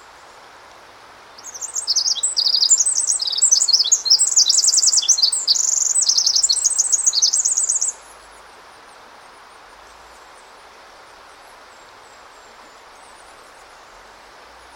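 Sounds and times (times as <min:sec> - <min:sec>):
soft hiss: 0:00.0 - 0:14.7
Pacific wren singing: 0:01.4 - 0:08.0.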